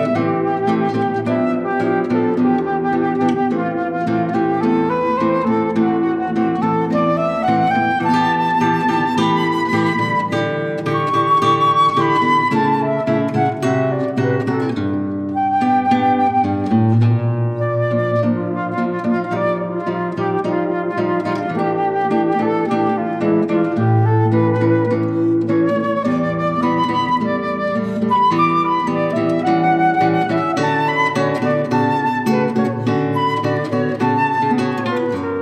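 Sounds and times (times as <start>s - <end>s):
flute playing moderato: 0.0s - 35.4s
guitar playing moderato: 0.0s - 35.4s.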